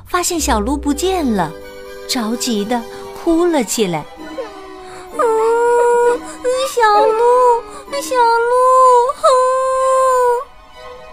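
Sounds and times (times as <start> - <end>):
speech: 0.1 - 4.2, 6.8 - 9.5
hunting dog howling: 4.0 - 10.4.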